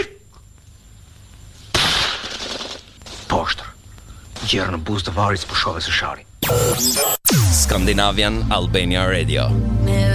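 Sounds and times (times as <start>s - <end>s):
gunshot during shooting practice at a target: 1.7s - 3.3s
speech: 3.3s - 3.7s, 4.4s - 10.1s.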